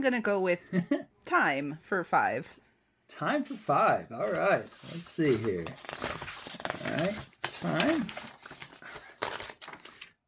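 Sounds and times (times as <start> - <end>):
speech: 0.0 - 6.2, 6.9 - 8.3
papers shuffling: 4.2 - 10.2.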